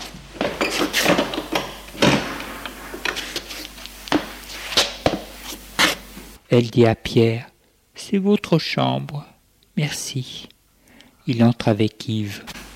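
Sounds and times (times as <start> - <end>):
door being opened: 0.4 - 3.3
speech: 6.5 - 10.5, 11.3 - 12.6.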